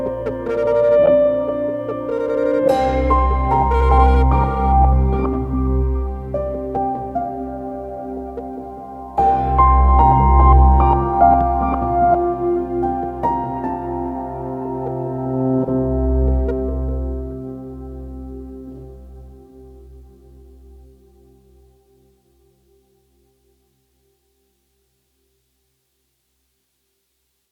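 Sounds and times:
slow chill tension music: 0.0 - 22.0.

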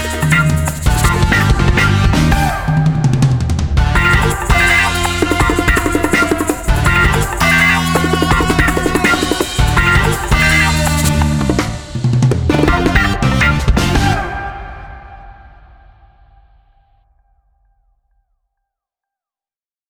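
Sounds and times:
funk wah guitar: 0.0 - 2.7, 3.8 - 14.3.

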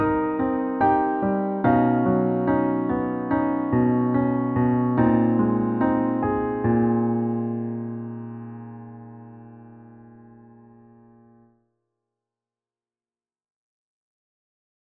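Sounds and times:
emotional new age music: 0.0 - 10.6.

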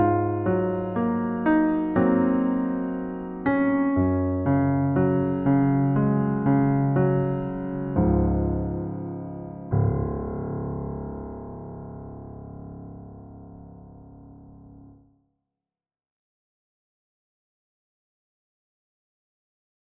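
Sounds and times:
emotional new age music: 0.0 - 14.9.

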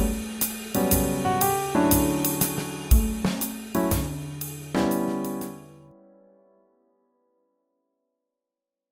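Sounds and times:
swing jazz: 0.0 - 5.6.

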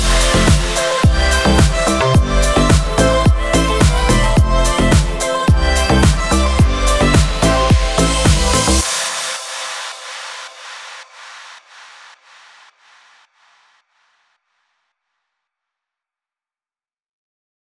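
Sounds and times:
EDM pop music: 0.0 - 11.6.

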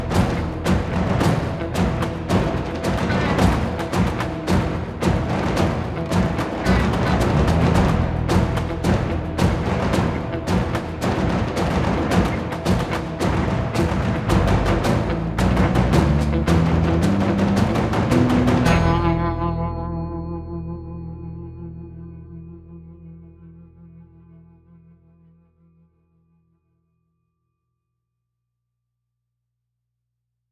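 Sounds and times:
percussion music: 0.0 - 20.7.

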